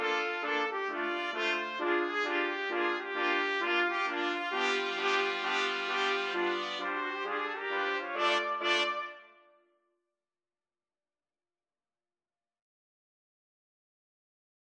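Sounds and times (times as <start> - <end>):
trumpet: 0.0 - 9.6.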